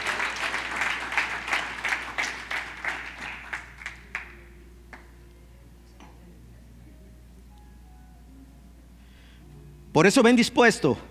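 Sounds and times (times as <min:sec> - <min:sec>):
audience applause: 0:00.0 - 0:04.4
speech: 0:10.0 - 0:11.0.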